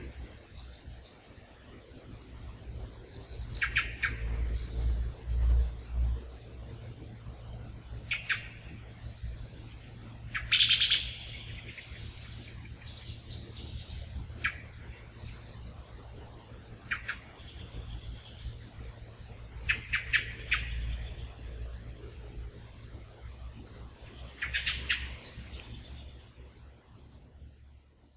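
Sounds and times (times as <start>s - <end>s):
blackbird call notes: 0.0s - 1.2s, 3.1s - 6.1s, 8.1s - 16.1s, 16.9s - 21.7s, 24.0s - 26.2s
European robin call notes: 0.0s - 1.3s, 3.0s - 7.4s, 8.0s - 21.8s, 24.0s - 28.1s.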